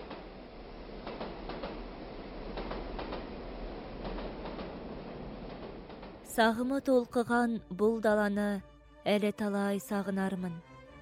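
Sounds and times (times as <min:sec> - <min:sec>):
train rumbling past on open steppe: 0:00.0 - 0:07.4
speech: 0:06.4 - 0:10.7.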